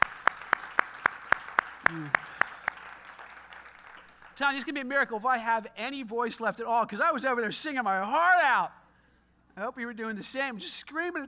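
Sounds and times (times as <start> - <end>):
audience hand claps: 0.0 - 4.4
speech: 1.9 - 2.3, 4.4 - 8.8, 9.6 - 11.2.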